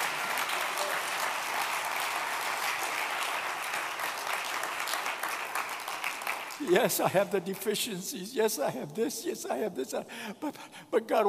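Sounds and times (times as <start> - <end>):
audience applause: 0.0 - 7.0
speech: 6.6 - 11.2.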